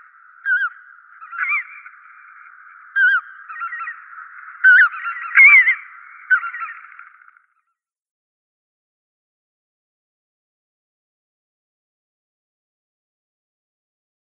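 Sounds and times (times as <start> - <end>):
Lesser White-fronted Goose: 0.0 - 7.4.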